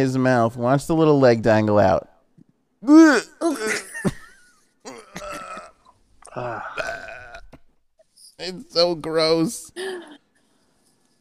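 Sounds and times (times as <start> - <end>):
speech: 0.0 - 2.1, 2.8 - 3.8, 6.4 - 6.8, 8.4 - 10.2
frog gagging and retching, trying to throw up: 4.9 - 7.6.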